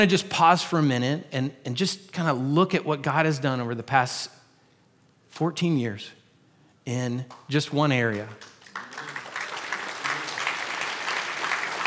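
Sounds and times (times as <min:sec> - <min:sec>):
speech: 0:00.0 - 0:04.4, 0:05.3 - 0:06.2, 0:06.9 - 0:08.5
audience clapping: 0:07.3 - 0:11.8.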